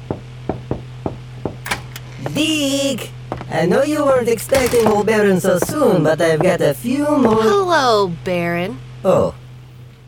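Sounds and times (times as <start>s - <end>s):
knocking on the door of a foreman's office: 0.0s - 1.8s, 4.1s - 7.5s
low steady hum: 0.0s - 10.0s
speech: 2.3s - 9.4s.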